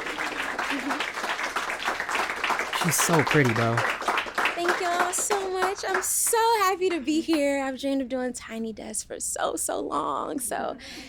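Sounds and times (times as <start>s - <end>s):
audience applause: 0.0s - 6.5s
speech: 0.8s - 1.2s, 2.8s - 4.0s, 5.8s - 11.0s.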